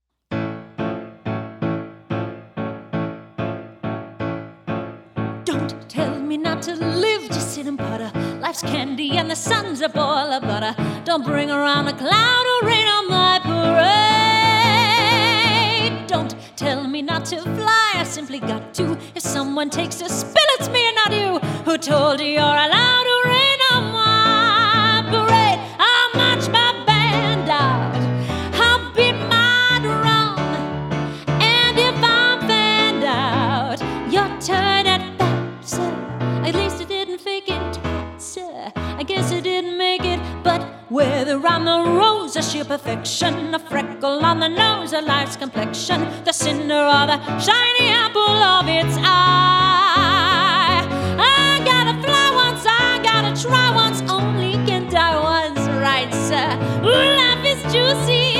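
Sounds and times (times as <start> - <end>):
piano music: 0.3 - 58.3.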